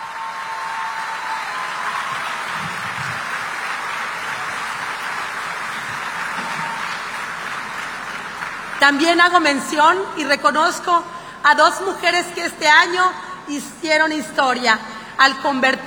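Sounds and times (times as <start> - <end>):
audience applause: 0.0 - 8.8
speech: 8.8 - 15.8.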